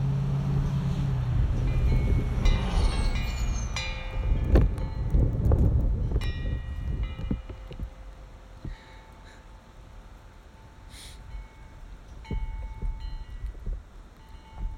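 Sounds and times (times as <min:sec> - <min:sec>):
big truck passing by: 0:00.0 - 0:14.7.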